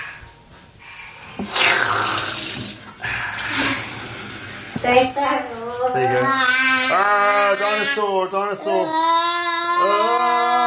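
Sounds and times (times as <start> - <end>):
tap running water into cup: 1.4 - 3.9
speech: 4.9 - 10.6.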